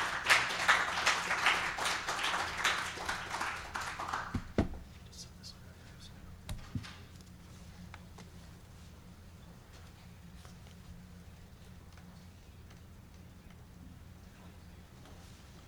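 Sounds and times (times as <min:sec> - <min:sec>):
audience applause after a speaker's introduction: 0:00.0 - 0:04.7.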